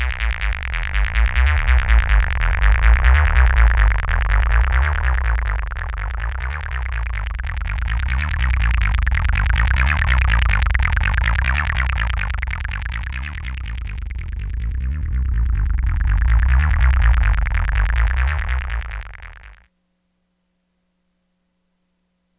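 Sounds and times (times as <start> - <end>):
synthesizer tones through high res VCAs modulated by 4 LFOs: 0.0 - 19.7.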